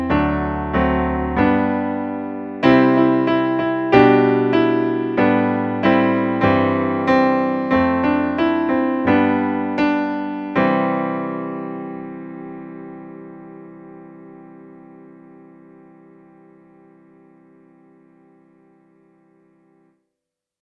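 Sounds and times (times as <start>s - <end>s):
accompaniment music: 0.0s - 16.0s.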